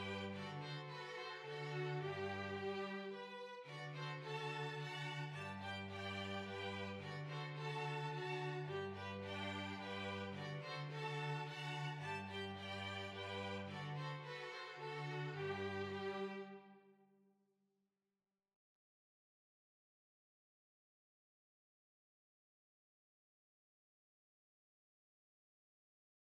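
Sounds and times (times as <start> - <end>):
waltz music: 0.0 - 16.6.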